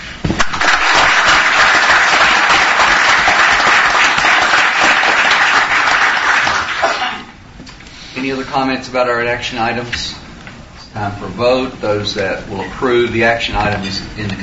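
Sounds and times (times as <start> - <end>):
round of applause: 0.4 - 7.2
speech: 8.2 - 10.2, 10.9 - 14.4.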